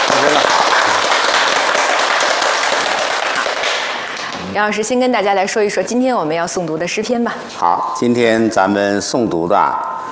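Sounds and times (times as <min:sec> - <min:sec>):
audience applause welcoming a guest: 0:00.0 - 0:04.5
speech: 0:04.6 - 0:10.1.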